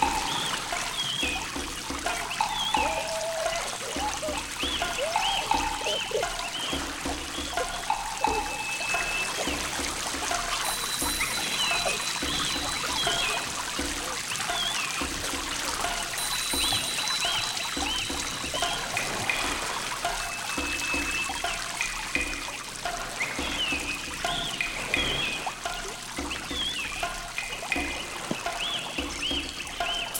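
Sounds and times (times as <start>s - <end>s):
rain forest river flowing: 0.0s - 30.1s
rain in a rain forest: 0.0s - 30.1s
children's voices in a rain forest: 2.7s - 6.6s.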